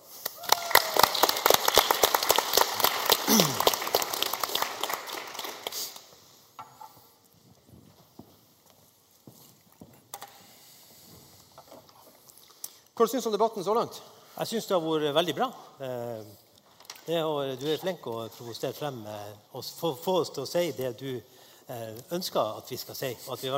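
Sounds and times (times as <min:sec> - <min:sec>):
audience applause: 0:00.2 - 0:06.1
speech: 0:03.3 - 0:03.7, 0:13.0 - 0:16.4, 0:17.1 - 0:23.5.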